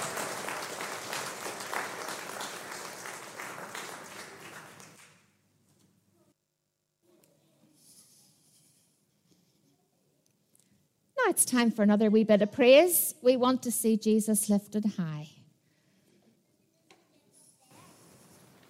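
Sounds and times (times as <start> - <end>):
audience applause: 0.0 - 5.2
speech: 11.3 - 15.4.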